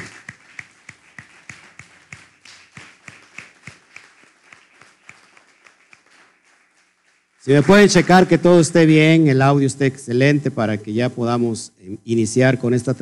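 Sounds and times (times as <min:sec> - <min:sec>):
loud applause: 0:00.0 - 0:08.6
speech: 0:07.4 - 0:13.0.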